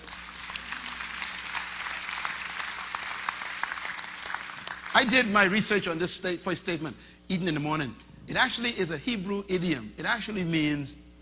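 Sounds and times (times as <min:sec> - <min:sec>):
audience clapping: 0:00.0 - 0:05.6
speech: 0:05.0 - 0:11.0.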